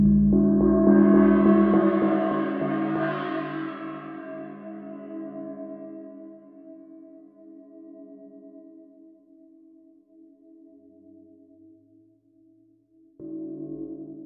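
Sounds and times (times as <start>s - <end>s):
gong struck for meditation: 0.1s - 5.3s.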